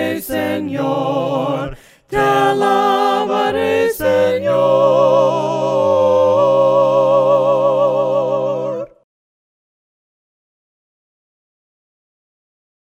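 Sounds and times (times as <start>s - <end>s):
voices singing hymns a cappella: 0.0s - 9.0s.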